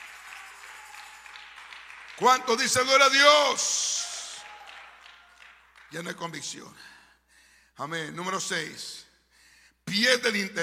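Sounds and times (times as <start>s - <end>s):
audience applause: 0.0s - 3.2s, 4.0s - 6.0s
speech: 2.2s - 4.0s, 5.9s - 7.0s, 7.8s - 9.1s, 9.9s - 10.6s.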